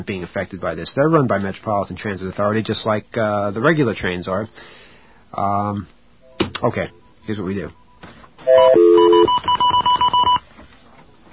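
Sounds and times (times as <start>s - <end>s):
speech: 0.0s - 9.8s
telephone touch-tone dialing: 8.5s - 10.4s.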